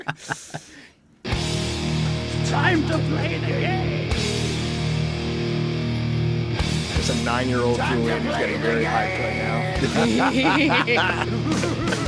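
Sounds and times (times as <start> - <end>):
laughter: 0.0 - 0.9, 7.7 - 12.0
heavy rock wrestling entrance theme with distorted guitars and drums: 1.2 - 12.0
spoken vocal line: 2.4 - 4.1, 7.0 - 11.3
speech: 7.3 - 11.8.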